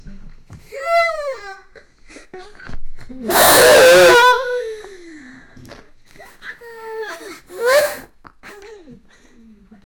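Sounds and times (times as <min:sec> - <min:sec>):
teenage girls vomiting: 0:03.3 - 0:04.5, 0:07.6 - 0:08.0.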